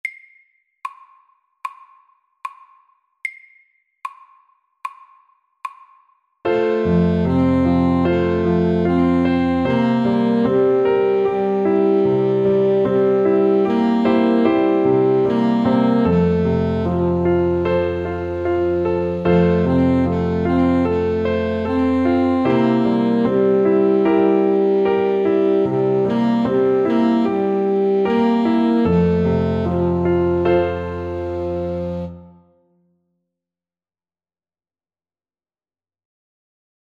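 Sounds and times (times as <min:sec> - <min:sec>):
slow Welsh melody at 75: 0:06.5 - 0:32.8.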